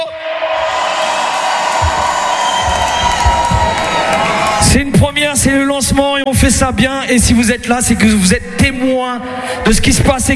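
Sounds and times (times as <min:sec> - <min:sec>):
festival crowd cheering for Radio Fuego at Viva Fuego Festival launch: 0:00.4 - 0:04.8
speech: 0:04.7 - 0:10.3.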